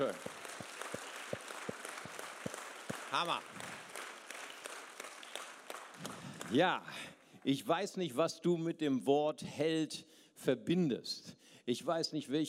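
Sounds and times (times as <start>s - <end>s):
speech: 0.0s - 0.4s, 3.1s - 3.7s, 6.0s - 12.4s
audience applause: 0.0s - 7.1s.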